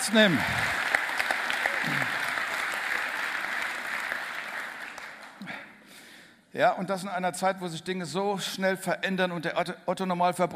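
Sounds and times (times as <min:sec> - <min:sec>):
speech: 0:00.0 - 0:00.8, 0:06.6 - 0:10.5
crowd applause: 0:00.0 - 0:05.6.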